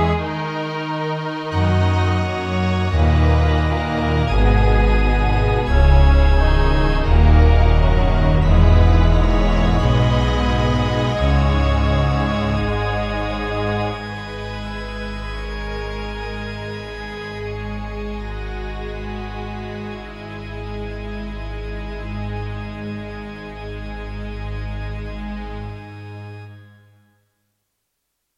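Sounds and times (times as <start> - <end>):
MidiPlus MiniEngine USB sound module: 1.5 - 16.6.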